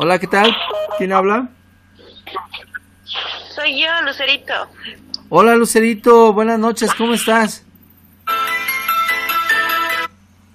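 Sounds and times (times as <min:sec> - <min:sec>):
speech: 0:00.0 - 0:01.6, 0:03.1 - 0:07.6
low steady hum: 0:00.0 - 0:08.8
phone ringtone for incoming call: 0:00.7 - 0:01.1, 0:08.3 - 0:10.1.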